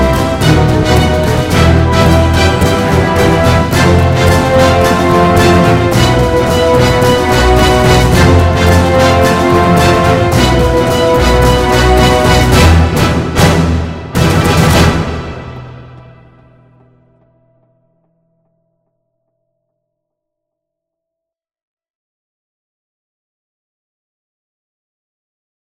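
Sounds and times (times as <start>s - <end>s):
inspirational orchestral music: 0.0s - 16.9s.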